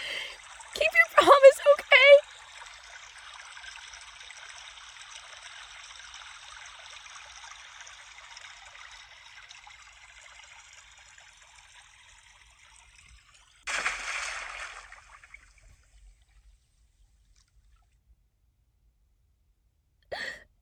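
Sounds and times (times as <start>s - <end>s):
rushing water: 0.0s - 15.8s
crashing water: 13.6s - 16.3s.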